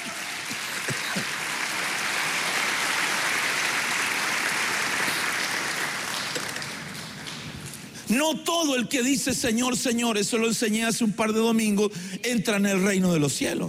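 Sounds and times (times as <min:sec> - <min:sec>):
audience applause: 0:00.0 - 0:08.0
speech: 0:08.1 - 0:13.6.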